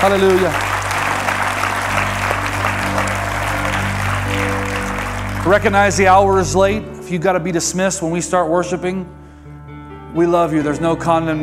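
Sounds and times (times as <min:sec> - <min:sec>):
speech: 0:00.0 - 0:00.7, 0:05.4 - 0:09.2, 0:10.1 - 0:11.4
audience applauding: 0:00.0 - 0:06.6.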